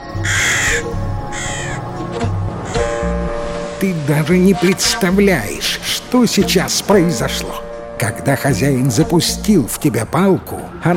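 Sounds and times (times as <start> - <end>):
crow cawing: 0.2 - 1.9, 2.6 - 3.1
speech: 3.8 - 10.9.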